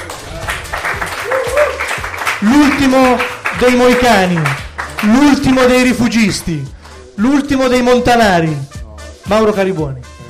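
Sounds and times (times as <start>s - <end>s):
audience applause: 0.0s - 5.5s
speech: 2.4s - 8.7s, 9.3s - 10.1s.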